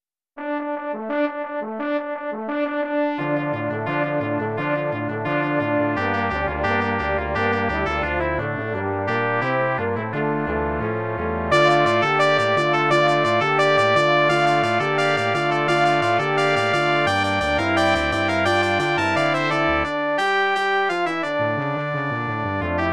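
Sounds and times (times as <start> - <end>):
brass quintet: 0.4 - 22.9.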